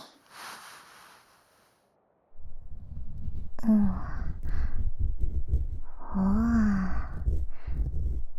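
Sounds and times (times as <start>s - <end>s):
ear cleaning scratching: 2.5s - 8.3s.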